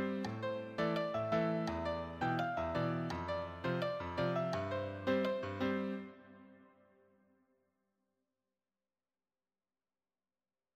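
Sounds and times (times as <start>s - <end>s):
piano solo: 0.0s - 6.8s.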